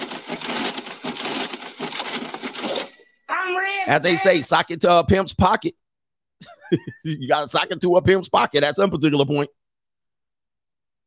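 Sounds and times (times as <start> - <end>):
old cash register rattling and clacking: 0.0 - 3.0
speech: 0.3 - 0.6, 3.5 - 5.8, 6.4 - 9.6
cash register bell ding: 2.7 - 3.8
laughter: 6.4 - 7.5.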